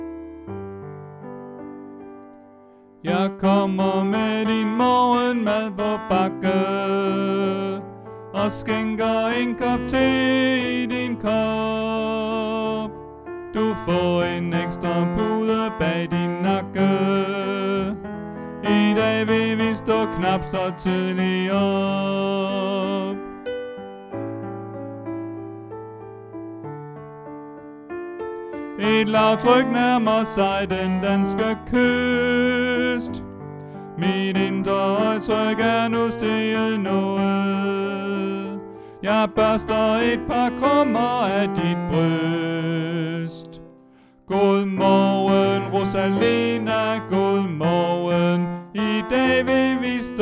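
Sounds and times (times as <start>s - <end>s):
tenor singing: 3.0s - 23.5s, 28.6s - 43.7s, 44.3s - 50.2s.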